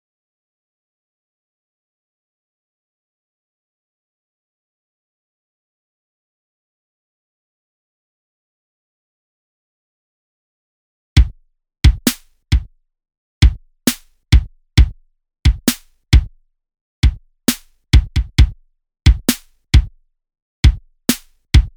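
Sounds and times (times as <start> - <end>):
lofi drums: 11.9 - 12.7, 13.4 - 14.9, 15.5 - 16.3, 17.0 - 19.9, 20.7 - 21.7.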